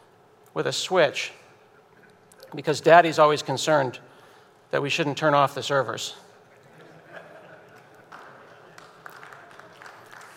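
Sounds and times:
speech: 0:00.6 - 0:01.4, 0:02.5 - 0:04.1, 0:04.7 - 0:06.3
laughter: 0:06.4 - 0:09.8
audience applause: 0:07.7 - 0:10.3.

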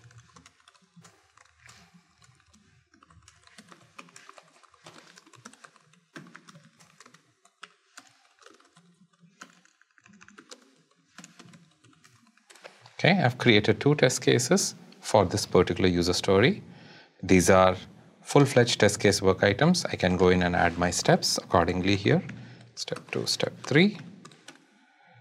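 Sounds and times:
typing on a computer keyboard: 0:00.0 - 0:13.8, 0:20.7 - 0:24.9
speech: 0:13.0 - 0:24.1.

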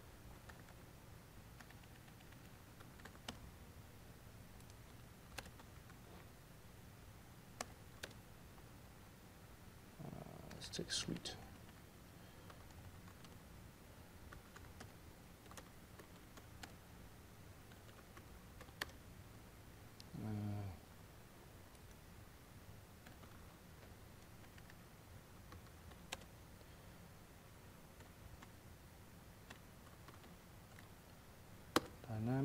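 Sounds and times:
steady hiss: 0:00.0 - 0:32.4
typing on a computer keyboard: 0:00.3 - 0:00.8, 0:01.6 - 0:03.4, 0:04.6 - 0:06.0, 0:12.4 - 0:13.4, 0:14.3 - 0:16.8, 0:17.7 - 0:19.0, 0:23.0 - 0:23.4, 0:24.2 - 0:24.8, 0:25.5 - 0:26.3, 0:29.5 - 0:30.9
speech: 0:10.7 - 0:11.5.

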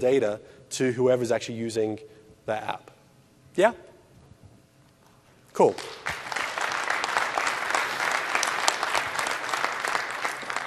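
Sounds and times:
speech: 0:00.0 - 0:03.0, 0:03.6 - 0:03.9, 0:05.6 - 0:06.2
spontaneous audience applause: 0:06.0 - 0:10.6.

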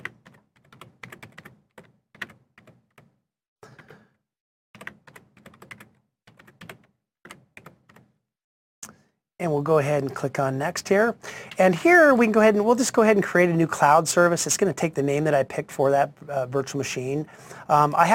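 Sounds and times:
typing a password on a computer keyboard: 0:00.0 - 0:04.2, 0:04.8 - 0:08.2
speech: 0:09.4 - 0:18.1.

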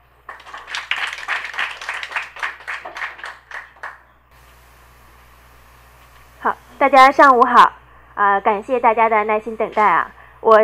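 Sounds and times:
audience applause: 0:00.3 - 0:04.1
speech: 0:06.4 - 0:10.6.

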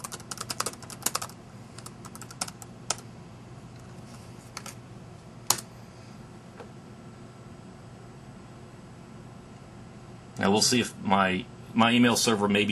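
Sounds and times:
computer keyboard keystrokes typing a web address: 0:00.0 - 0:03.0
low hum: 0:00.0 - 0:12.6
speech: 0:10.4 - 0:12.6.

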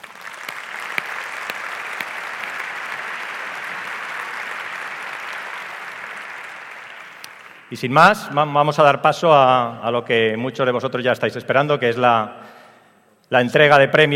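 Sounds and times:
large audience applause for the partners at an awards event: 0:00.0 - 0:07.9
speech: 0:07.7 - 0:12.6, 0:13.3 - 0:14.1.

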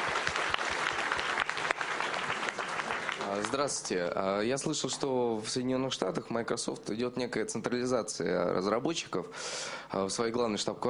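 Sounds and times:
audience applause at a Microsoft Imagine Cup event: 0:00.0 - 0:03.8
speech: 0:03.5 - 0:10.8.

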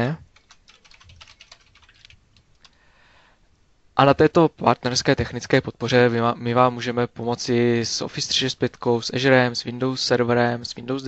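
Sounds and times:
speech: 0:00.0 - 0:00.2, 0:04.0 - 0:11.0
typing a chat message on a computer keyboard: 0:00.2 - 0:02.8.

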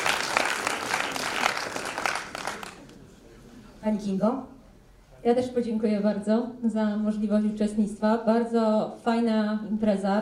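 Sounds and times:
applause: 0:00.0 - 0:03.0
speech: 0:03.8 - 0:04.6, 0:05.2 - 0:10.2.

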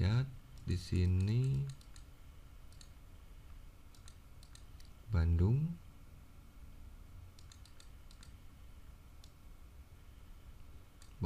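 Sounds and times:
speech: 0:00.0 - 0:01.8, 0:05.1 - 0:05.8
low steady hum: 0:00.0 - 0:11.2
faint mouse clicks on an on-screen refresh button in Power View: 0:00.6 - 0:02.1, 0:02.7 - 0:03.0, 0:03.9 - 0:05.0, 0:07.4 - 0:08.4.

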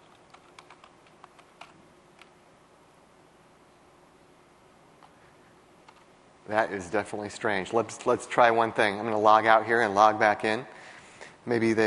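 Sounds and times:
steady hiss: 0:00.0 - 0:11.8
password typed on a computer keyboard: 0:00.1 - 0:02.3
speech: 0:06.5 - 0:10.8, 0:11.4 - 0:11.8.

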